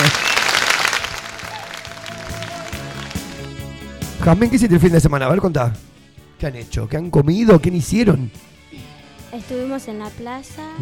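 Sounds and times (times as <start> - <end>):
studio audience applause: 0.0 - 3.7
speech: 4.2 - 8.5, 9.3 - 10.8.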